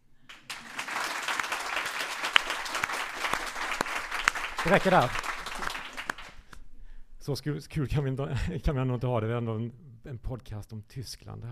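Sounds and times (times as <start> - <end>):
audience applause: 0.3 - 6.5
speech: 4.6 - 5.3, 7.2 - 11.5.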